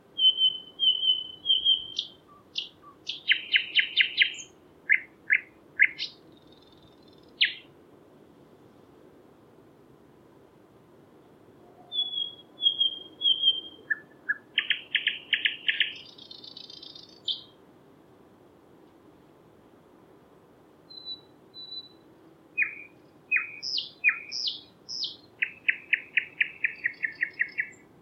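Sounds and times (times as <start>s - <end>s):
nightingale singing: 0.1s - 7.7s, 11.6s - 17.6s, 20.9s - 28.0s.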